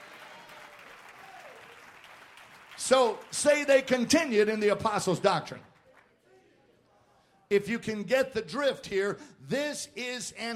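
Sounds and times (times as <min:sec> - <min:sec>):
congregation clapping hands during a church sermon: 0:00.0 - 0:06.2
speech: 0:02.8 - 0:05.7, 0:07.5 - 0:10.5.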